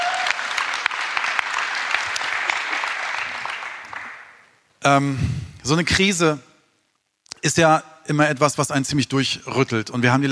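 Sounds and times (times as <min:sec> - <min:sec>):
audience applause: 0:00.0 - 0:04.3
speech: 0:04.8 - 0:06.5, 0:07.4 - 0:10.3.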